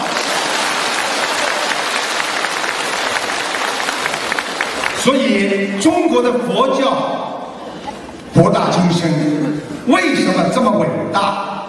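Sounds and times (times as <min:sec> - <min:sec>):
audience applause: 0:00.0 - 0:05.2
speech: 0:05.0 - 0:07.2, 0:08.4 - 0:11.5.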